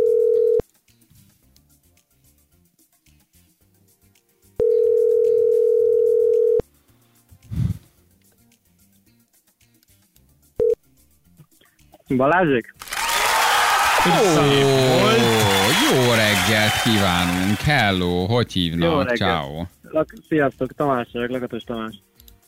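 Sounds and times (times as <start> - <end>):
telephone line tone as a call is placed to a listener: 0.0 - 0.6, 4.6 - 6.6
speech: 12.1 - 12.8, 14.0 - 22.0
laughter: 13.3 - 18.1.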